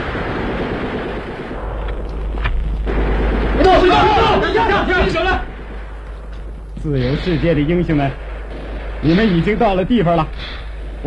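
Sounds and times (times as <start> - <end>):
dense rumbling wash of noise: 0.0 - 11.0
scattered sharp gunshots: 0.0 - 11.0
excited voices shouting: 3.5 - 5.5
speech: 6.8 - 8.3, 9.0 - 11.0.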